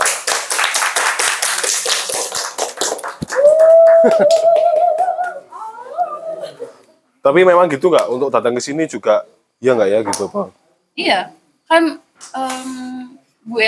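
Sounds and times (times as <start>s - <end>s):
audience clapping hands: 0.0s - 5.5s
long wavering high whoop-like tone: 3.3s - 6.8s
speech: 4.0s - 4.6s, 7.2s - 12.8s, 13.4s - 13.6s.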